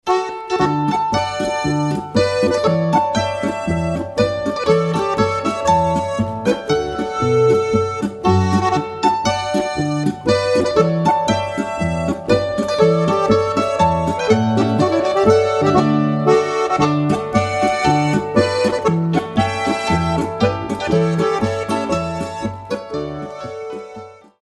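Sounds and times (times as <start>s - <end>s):
polka music: 0.0s - 24.4s.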